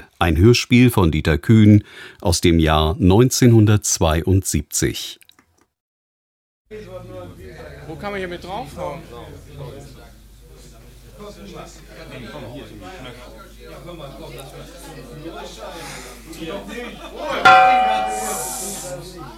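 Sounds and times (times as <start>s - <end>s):
speech: 0.2s - 5.2s, 6.7s - 10.0s, 11.2s - 19.3s
radio time signal gong strike: 17.4s - 19.0s.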